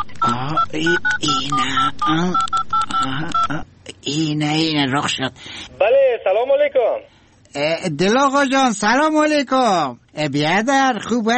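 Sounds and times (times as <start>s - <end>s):
touch-tone telephone number dialing beeps: 0.0s - 3.6s
speech: 0.7s - 2.6s, 4.2s - 11.3s.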